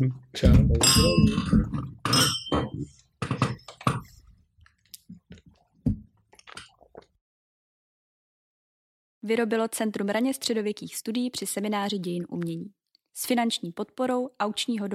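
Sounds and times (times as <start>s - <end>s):
speech: 0.0s - 2.3s, 9.3s - 14.9s
glasses clinking in a toast: 0.8s - 3.9s.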